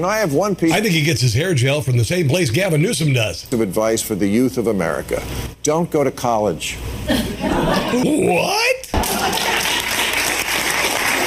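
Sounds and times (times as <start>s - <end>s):
speech: 0.0s - 9.4s
laughter: 7.1s - 8.3s, 9.0s - 10.2s
audience applauding: 9.0s - 11.2s.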